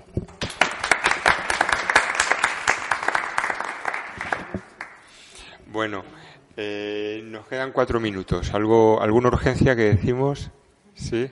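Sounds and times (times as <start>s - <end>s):
group applause: 0.4s - 5.4s
speech: 5.8s - 11.3s.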